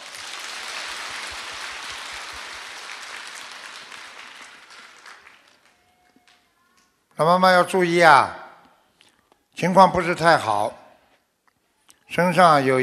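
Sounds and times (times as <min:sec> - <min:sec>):
applause: 0:00.0 - 0:06.6
speech: 0:07.2 - 0:08.4, 0:09.6 - 0:10.8, 0:12.1 - 0:12.8.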